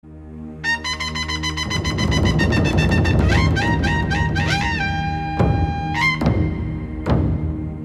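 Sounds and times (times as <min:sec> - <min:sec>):
Sikh nagara kettledrum beating: 0:01.6 - 0:07.8.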